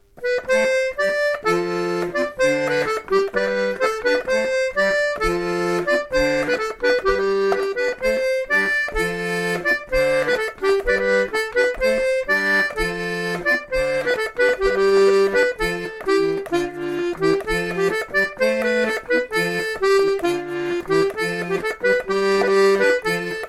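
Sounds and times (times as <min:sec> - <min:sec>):
accordion bourree: 0:00.0 - 0:23.4.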